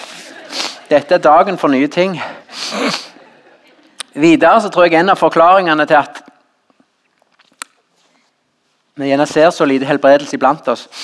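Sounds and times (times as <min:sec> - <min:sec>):
person blowing nose: 0:00.0 - 0:00.9, 0:02.5 - 0:03.2
speech: 0:00.9 - 0:03.1, 0:04.2 - 0:06.2, 0:09.0 - 0:11.0.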